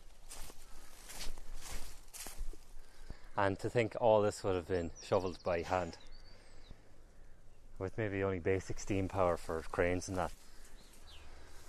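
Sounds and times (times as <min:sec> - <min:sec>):
footsteps walking along an embankment about 20 feet high: 0:00.0 - 0:03.2, 0:09.1 - 0:11.6
speech: 0:03.4 - 0:06.1, 0:07.8 - 0:10.4.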